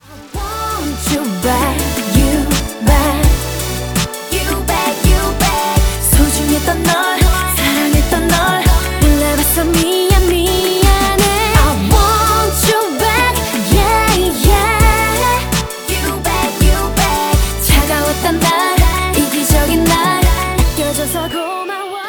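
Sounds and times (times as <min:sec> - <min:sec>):
K-pop music: 0:00.0 - 0:22.0.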